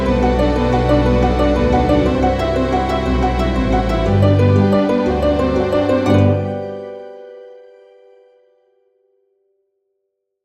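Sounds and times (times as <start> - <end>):
orchestral background music: 0.0 - 8.3.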